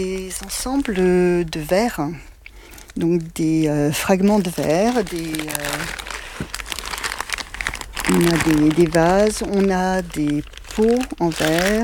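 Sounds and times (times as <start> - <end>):
speech: 0.0 - 2.3, 3.0 - 6.5, 8.1 - 11.8
packaging crinkling as a package of glass fragments is opened: 0.0 - 11.8.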